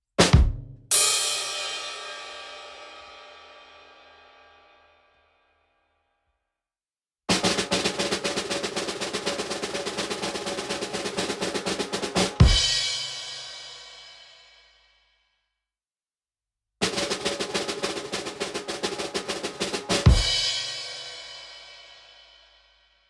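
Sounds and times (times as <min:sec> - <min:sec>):
drum roll: 0:00.2 - 0:03.4, 0:07.3 - 0:13.7, 0:16.8 - 0:22.0.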